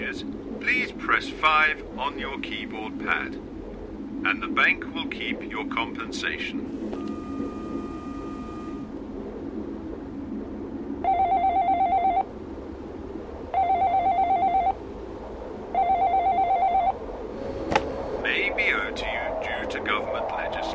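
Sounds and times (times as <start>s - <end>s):
low rumble: 0.0s - 20.7s
speech: 0.1s - 3.5s, 4.2s - 6.8s
short steady tone: 6.8s - 8.9s
telephone ringing: 11.1s - 12.2s, 13.6s - 14.8s, 15.8s - 17.0s.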